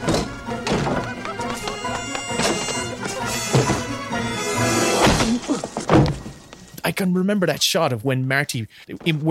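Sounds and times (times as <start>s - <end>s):
loud film score: 0.0s - 6.8s
punch landing in a film scene: 5.0s - 6.3s
speech: 6.9s - 9.3s.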